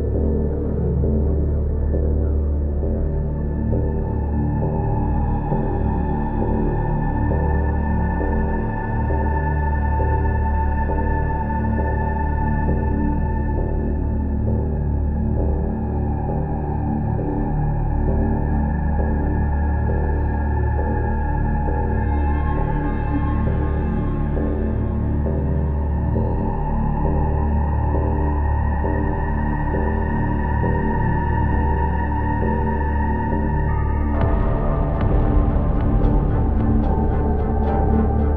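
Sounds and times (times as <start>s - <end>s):
creepy ambience: 0.0s - 38.3s.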